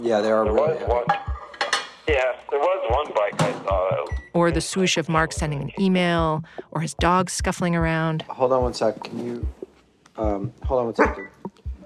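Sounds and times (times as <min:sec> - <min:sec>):
speech: 0:00.0 - 0:01.3, 0:02.1 - 0:09.6, 0:10.2 - 0:11.4
dishes and cutlery clattering while making a snack: 0:01.1 - 0:02.0.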